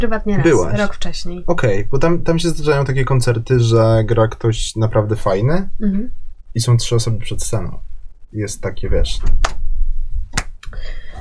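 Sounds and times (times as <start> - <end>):
speech: 0.0 - 9.6, 10.3 - 11.0
single hand clap: 10.4 - 10.6.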